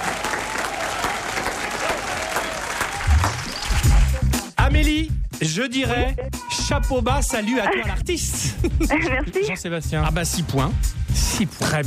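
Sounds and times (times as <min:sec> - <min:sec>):
crowd applause: 0:00.0 - 0:04.5
speech: 0:04.8 - 0:11.8.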